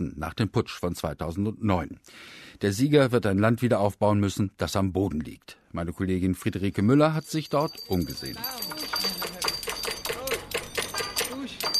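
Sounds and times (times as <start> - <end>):
speech: 0.0 - 9.0
small rickshaw bells ringing: 6.6 - 11.7.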